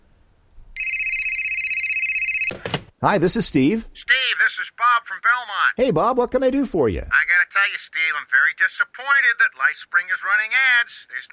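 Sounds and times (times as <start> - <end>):
telephone ringing with a high electronic tone: 0.8 - 2.6
speech: 2.5 - 11.3.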